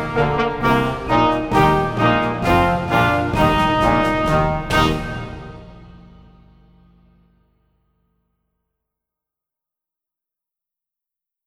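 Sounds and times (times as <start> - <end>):
march music: 0.0 - 7.4.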